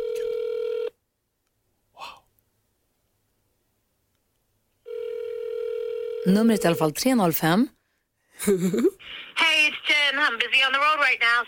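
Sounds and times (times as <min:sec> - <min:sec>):
buzzy phone ringback tone: 0:00.0 - 0:00.9, 0:04.8 - 0:06.3
speech: 0:06.2 - 0:07.8, 0:08.4 - 0:11.4
laughter: 0:08.4 - 0:09.0.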